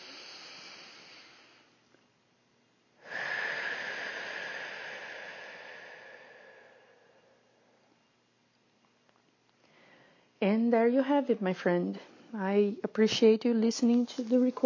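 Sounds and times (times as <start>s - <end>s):
deep breath taken slowly: 0.0s - 1.9s, 3.0s - 8.1s, 9.6s - 10.4s
speech: 10.4s - 14.6s.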